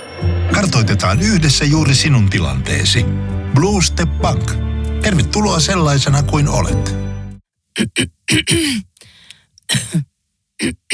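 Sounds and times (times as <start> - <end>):
speech: 0.6 - 7.0, 7.8 - 8.9, 9.7 - 10.9
person coughing dry irritated coughs: 7.8 - 8.9, 9.7 - 10.9.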